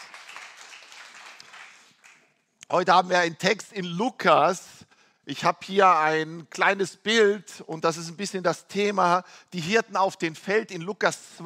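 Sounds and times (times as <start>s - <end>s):
audience applause: 0.0s - 2.2s
speech: 2.7s - 4.7s, 5.3s - 11.4s.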